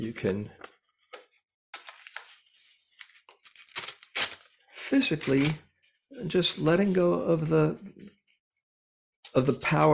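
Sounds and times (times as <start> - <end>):
speech: 0.0 - 0.6, 4.9 - 8.2, 9.3 - 9.9
paper being torn up: 3.0 - 5.6.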